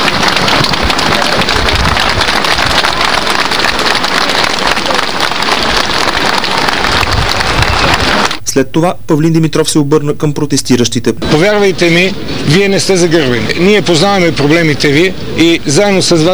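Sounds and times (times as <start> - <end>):
crowd applause and ovation: 0.0 - 8.4
speech: 8.6 - 16.3.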